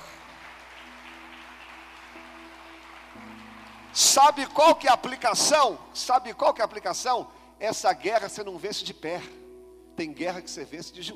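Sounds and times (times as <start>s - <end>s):
audience applause: 0.0s - 4.4s
speech: 4.0s - 9.4s, 10.0s - 11.1s.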